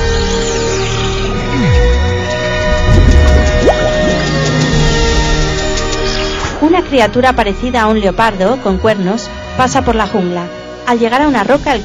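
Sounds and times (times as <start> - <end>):
shimmering ambient backdrop: 0.0 - 11.8
water droplets floating in the air plinking: 3.1 - 4.2
speech: 6.7 - 11.8.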